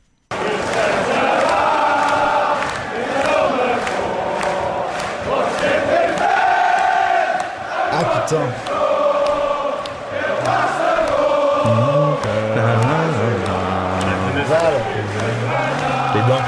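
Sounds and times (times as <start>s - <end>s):
football supporters chanting in stadium: 0.3s - 16.4s.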